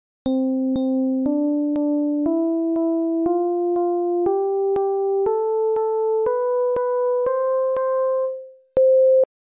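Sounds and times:
chip music test: 0.3s - 8.9s.

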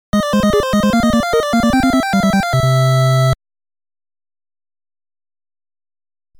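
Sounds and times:
level complete jingle: 0.2s - 3.3s.

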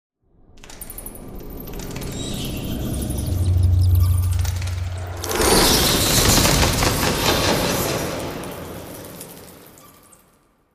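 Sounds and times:
group of bats flying away: 1.6s - 7.8s.

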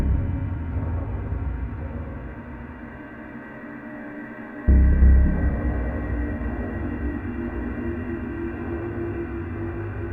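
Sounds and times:
day stinger: 0.0s - 1.9s, 4.7s - 10.0s.

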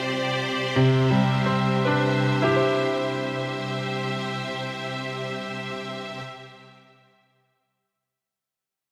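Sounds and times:
piano music: 0.0s - 6.7s.

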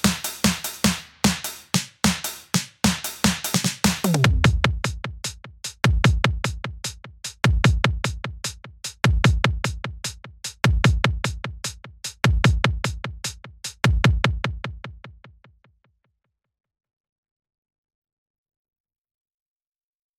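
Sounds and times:
percussion: 0.0s - 15.4s.

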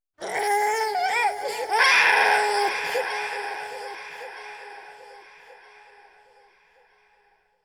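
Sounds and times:
baby crying: 0.2s - 3.4s.

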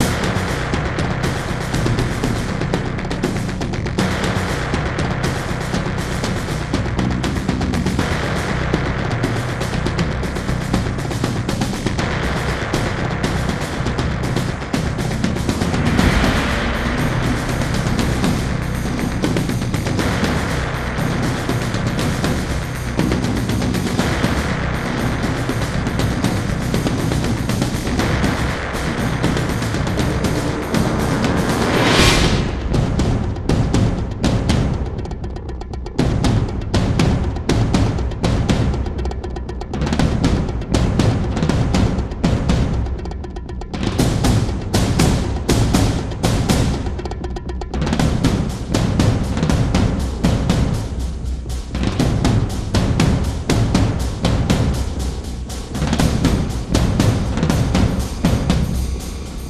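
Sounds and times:
percussive bass: 0.0s - 59.4s.

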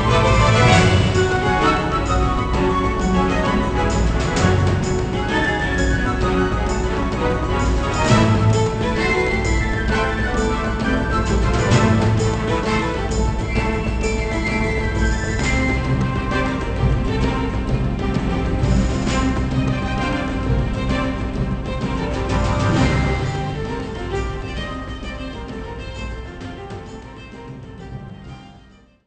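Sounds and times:
video game battle background music: 0.0s - 28.4s.

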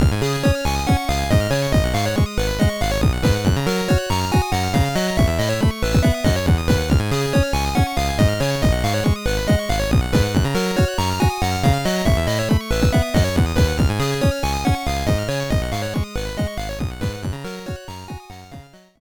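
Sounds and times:
Game Boy Advance background music: 0.0s - 19.0s.

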